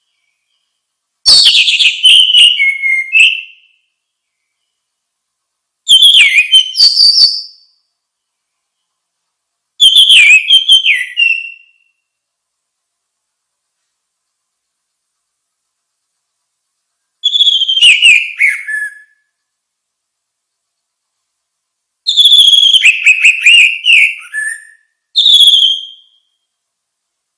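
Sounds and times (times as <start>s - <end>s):
orange-headed thrush song: 0.0s - 4.0s, 5.9s - 7.8s, 9.8s - 12.2s, 17.2s - 19.3s, 22.1s - 26.6s.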